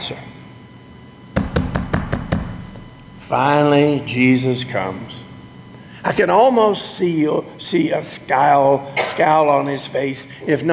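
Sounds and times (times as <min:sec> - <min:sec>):
speech: 0:00.1 - 0:00.3, 0:03.3 - 0:05.3, 0:06.0 - 0:10.7
knocking on a door: 0:01.4 - 0:02.9.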